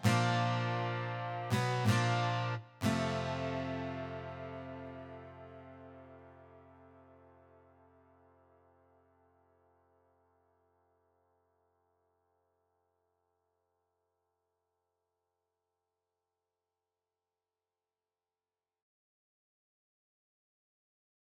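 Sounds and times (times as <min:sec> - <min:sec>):
guitar strum: 0:00.0 - 0:08.0.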